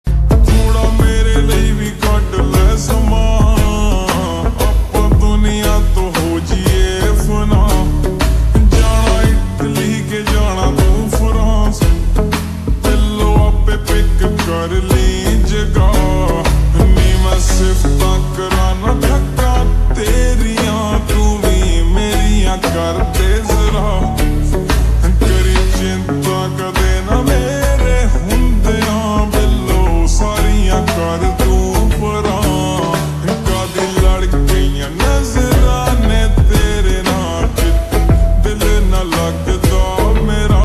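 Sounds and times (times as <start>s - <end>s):
slowed reverb music: 0.1s - 40.6s.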